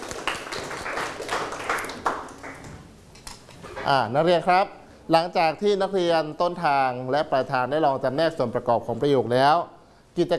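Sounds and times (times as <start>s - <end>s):
students clapping: 0.0s - 2.8s
speech: 3.9s - 10.3s.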